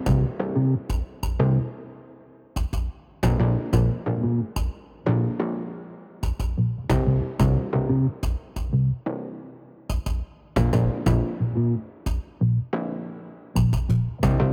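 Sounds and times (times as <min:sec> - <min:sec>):
bass: 0:00.0 - 0:01.8, 0:03.2 - 0:05.5, 0:06.2 - 0:09.1, 0:10.6 - 0:12.8, 0:13.6 - 0:14.5.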